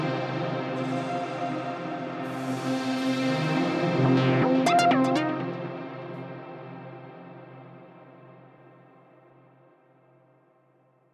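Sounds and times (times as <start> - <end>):
Mercury 7 synthesizer reverb shimmer: 1.0 - 6.1.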